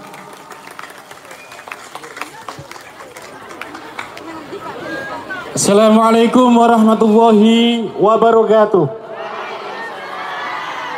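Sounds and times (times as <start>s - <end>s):
audience applause: 0.0s - 5.2s
speech: 5.6s - 9.0s.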